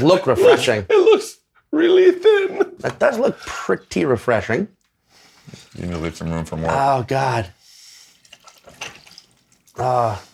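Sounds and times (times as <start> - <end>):
speech: 0.0 - 4.8, 5.5 - 7.6, 9.8 - 10.3
alcohol being poured into a glass: 5.3 - 6.0, 7.9 - 10.3.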